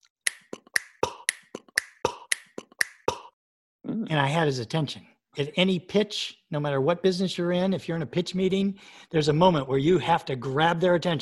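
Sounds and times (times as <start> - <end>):
mouth noises: 0.2 - 4.2
finger snaps: 0.3 - 3.3
speech: 4.0 - 11.2.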